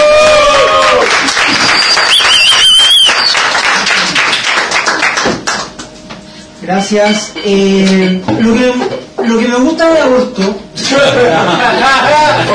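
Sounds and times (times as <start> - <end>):
whistles and cheers: 0.0 - 3.6
audience applause: 0.0 - 5.7
speech: 6.7 - 12.5
laughter: 10.8 - 12.5.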